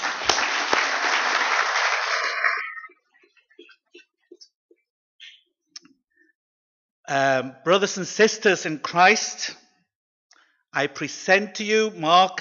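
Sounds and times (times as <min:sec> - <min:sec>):
audience applause: 0:00.0 - 0:02.9
speech: 0:07.1 - 0:09.6, 0:10.8 - 0:12.3.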